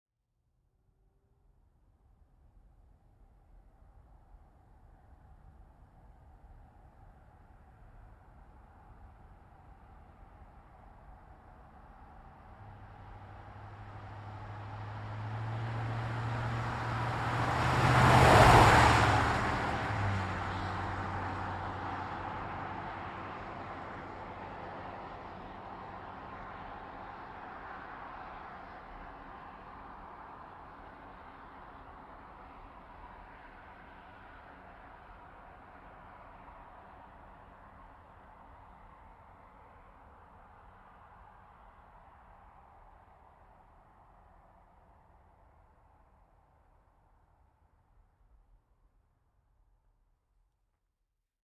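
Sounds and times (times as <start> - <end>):
GMC Savana truck engine: 9.6 - 42.3.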